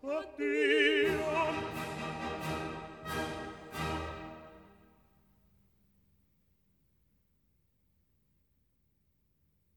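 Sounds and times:
state orchestra playing: 1.0s - 4.9s.

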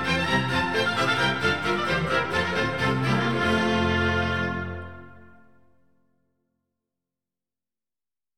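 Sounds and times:
baroque orchestral suite in D major: 0.0s - 5.9s.

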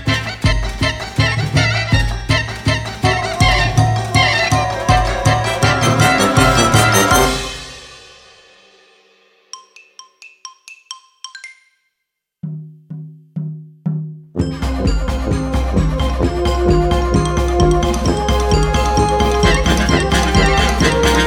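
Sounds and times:
symphony orchestra: 0.1s - 8.2s, 14.5s - 21.2s.

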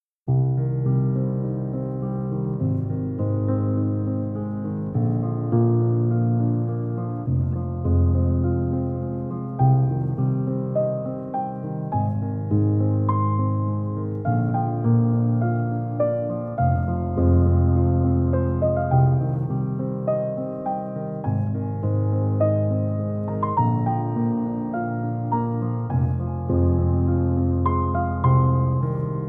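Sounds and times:
relaxing piano music for concentration: 0.3s - 29.2s.

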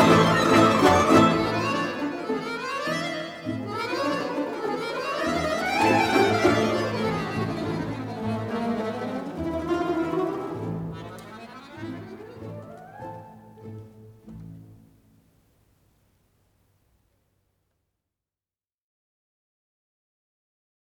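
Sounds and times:
violin ensemble: 0.0s - 14.9s.

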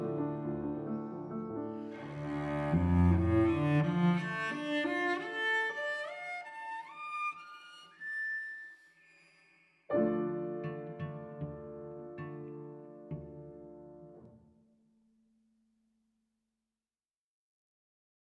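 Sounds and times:
prelude for cello and piano: 0.0s - 8.6s, 9.9s - 14.5s.

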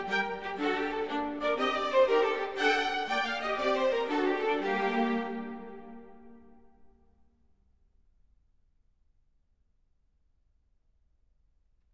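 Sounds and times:
orchestral suite in B minor: 0.0s - 6.7s.

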